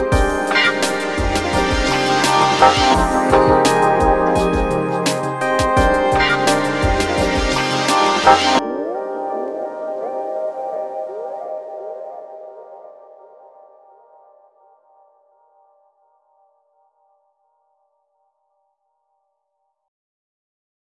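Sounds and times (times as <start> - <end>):
summer sexy chill music: 0.0 - 14.3.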